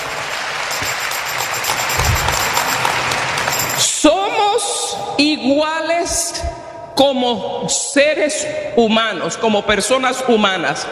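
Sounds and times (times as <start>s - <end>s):
audience applause: 0.0s - 3.9s
speech: 5.2s - 10.9s.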